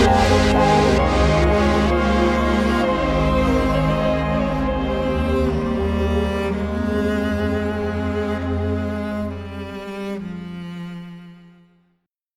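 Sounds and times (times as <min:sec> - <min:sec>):
trance music: 0:00.0 - 0:09.6.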